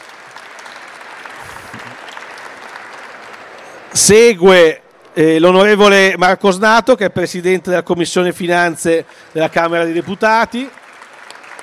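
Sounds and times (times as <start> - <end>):
audience applause: 0.0 - 5.2, 8.4 - 11.6
speech: 4.0 - 10.8.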